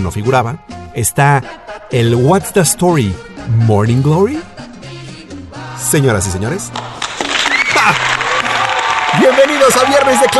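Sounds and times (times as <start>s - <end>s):
speech: 0.0s - 4.6s, 5.8s - 7.0s, 9.2s - 10.3s
crowd applause: 6.8s - 10.3s
cheering and whistles: 7.4s - 10.3s.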